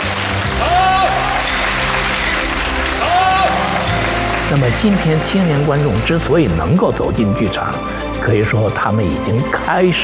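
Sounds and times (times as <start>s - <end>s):
theater audience applause: 0.0s - 6.8s
speech: 4.5s - 10.0s.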